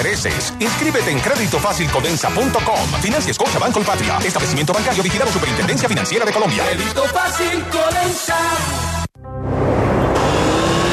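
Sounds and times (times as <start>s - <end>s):
speech: 0.0s - 9.0s
motorcycle engines roaring on a road with a 50 km/h speed limit: 9.8s - 10.9s.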